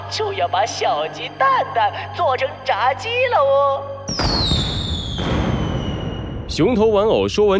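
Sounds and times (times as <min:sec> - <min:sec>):
speech: 0:00.1 - 0:05.3, 0:06.6 - 0:07.5
fireworks bursting: 0:04.1 - 0:06.4.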